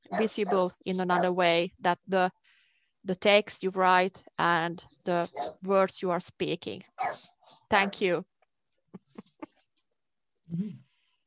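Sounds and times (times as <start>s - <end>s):
dog giving a short bark or yelp in a room: 0.1s - 1.4s, 5.3s - 5.6s, 7.0s - 7.3s
speech: 0.1s - 8.3s, 10.5s - 10.8s.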